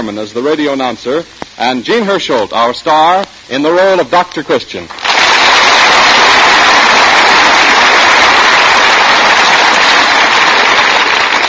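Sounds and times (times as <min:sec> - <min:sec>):
speech: 0:00.0 - 0:05.0
studio audience applause: 0:04.9 - 0:11.4.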